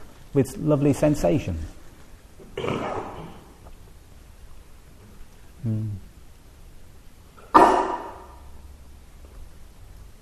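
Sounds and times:
speech: 0.4s - 1.8s
person sneezing: 2.6s - 3.5s, 7.4s - 8.4s.

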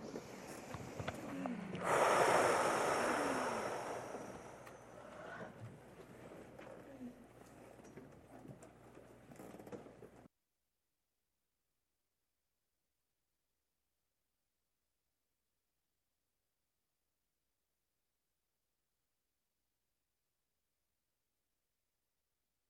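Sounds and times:
long breath during meditation practice: 0.0s - 5.6s.

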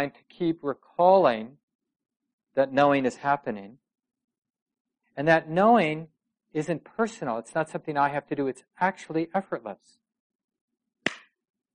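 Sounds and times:
speech: 0.0s - 1.6s, 2.6s - 3.8s, 5.2s - 10.0s
single hand clap: 11.1s - 11.3s.

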